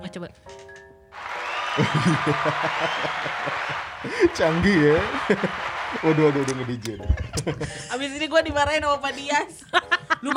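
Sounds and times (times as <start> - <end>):
speech: 0.0 - 0.6, 1.8 - 10.3
applause sound effect: 1.2 - 7.1
laughter: 1.2 - 8.1, 9.2 - 10.3.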